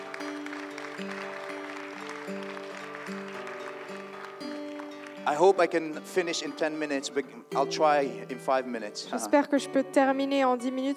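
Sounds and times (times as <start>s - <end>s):
audience applause: 0.0s - 6.5s
speech: 1.0s - 1.2s, 5.3s - 10.9s.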